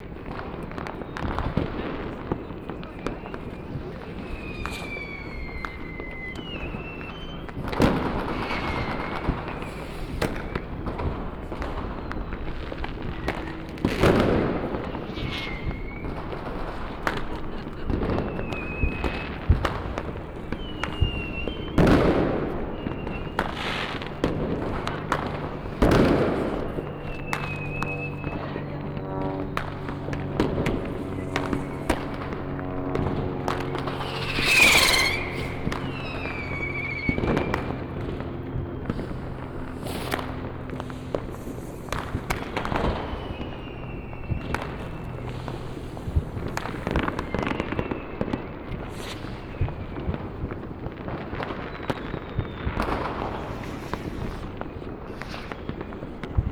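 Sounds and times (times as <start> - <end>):
fireworks: 0.0 - 56.5.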